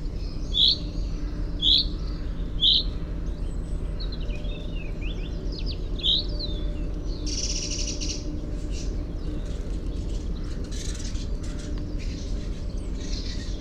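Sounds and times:
Common chaffinch (Fringilla coelebs) calls: 0:00.0 - 0:13.5.

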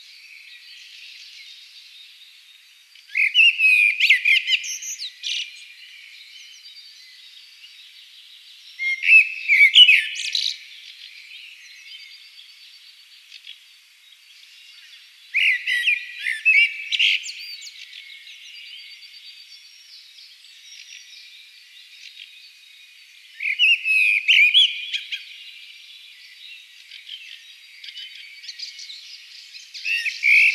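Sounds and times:
common blackbird singing: 0:00.0 - 0:30.5.

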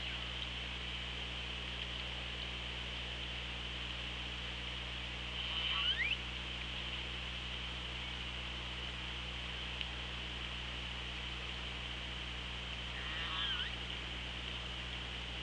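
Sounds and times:
steady low hum: 0:00.0 - 0:15.4
continuous underwater hiss: 0:05.3 - 0:06.2
Killer whale call: 0:05.4 - 0:06.2, 0:12.9 - 0:13.8.

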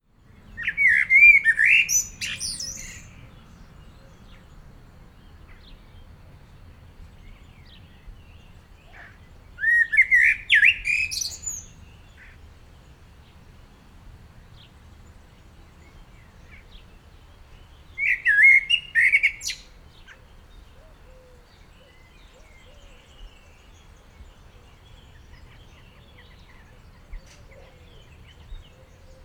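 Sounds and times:
common blackbird singing: 0:00.2 - 0:12.4, 0:15.6 - 0:29.2.

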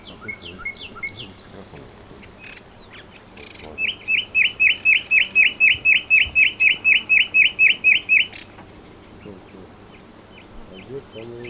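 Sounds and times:
common nightingale song: 0:00.0 - 0:11.4
speech: 0:00.2 - 0:01.0.

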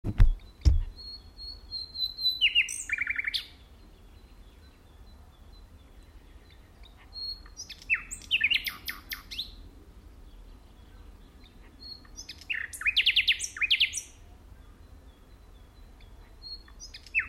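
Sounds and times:
low thumps: 0:00.0 - 0:01.0
common nightingale song: 0:00.1 - 0:17.2.

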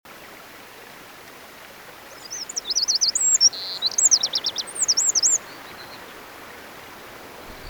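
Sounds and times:
faint background hiss: 0:00.1 - 0:07.6
Eurasian wren singing: 0:02.1 - 0:06.1.

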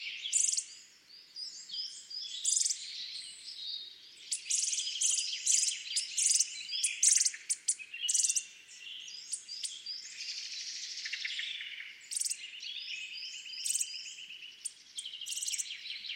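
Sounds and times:
chorus of other birds: 0:00.0 - 0:16.1
Eurasian nuthatch calls: 0:00.3 - 0:00.7, 0:01.8 - 0:02.9, 0:04.2 - 0:08.5, 0:09.2 - 0:09.9, 0:11.0 - 0:12.5, 0:13.5 - 0:16.1.

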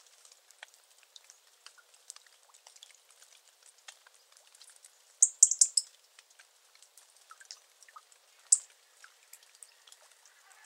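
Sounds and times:
faint crackles: 0:00.0 - 0:10.6
European robin calls: 0:05.2 - 0:05.9, 0:08.4 - 0:08.7.

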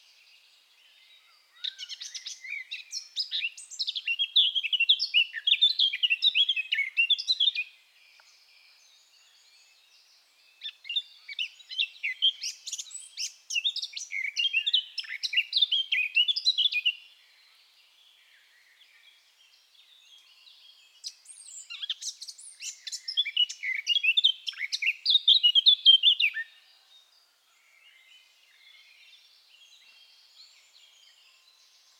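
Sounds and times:
Eurasian blackcap warbling song: 0:00.0 - 0:31.9.

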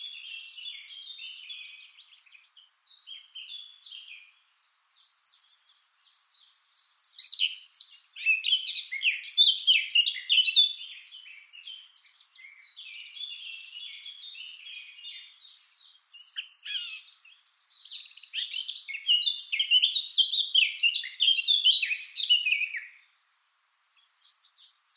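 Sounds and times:
Eurasian blackcap song: 0:00.0 - 0:23.2, 0:23.8 - 0:24.9.

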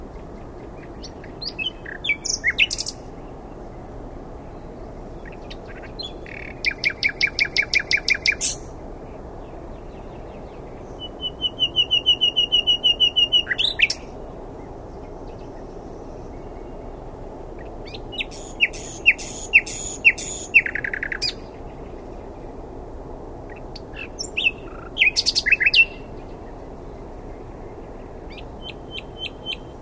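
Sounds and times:
common nightingale singing: 0:00.2 - 0:03.6, 0:04.5 - 0:08.8, 0:09.4 - 0:14.2, 0:17.6 - 0:22.5, 0:23.5 - 0:29.8.

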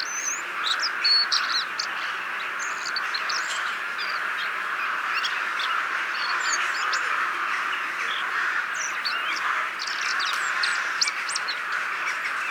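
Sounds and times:
common blackbird chinking calls: 0:00.0 - 0:12.4.

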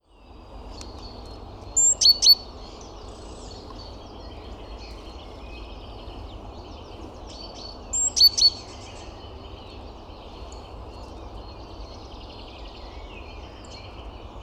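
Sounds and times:
low background rumble: 0:00.1 - 0:14.4
great tit call: 0:01.8 - 0:02.4, 0:07.9 - 0:08.9.

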